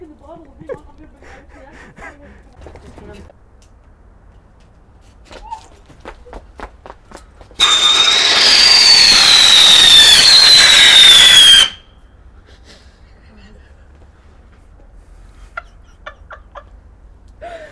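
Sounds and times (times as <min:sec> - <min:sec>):
faint sharp chirps: 0:07.6 - 0:11.8
Roman candle firework hissing with falling whistle: 0:07.6 - 0:11.9.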